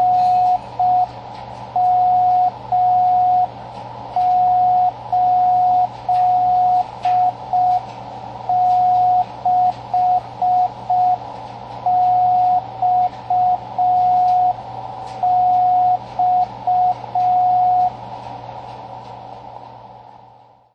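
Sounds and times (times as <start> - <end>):
slow CW morse code beacon: 0.0 - 1.2, 1.8 - 3.6, 4.2 - 14.6, 15.2 - 18.0.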